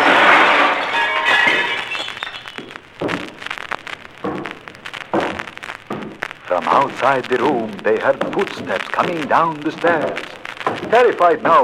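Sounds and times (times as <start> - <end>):
large mirror shattering: 0.0 - 2.7
speech: 6.6 - 11.6.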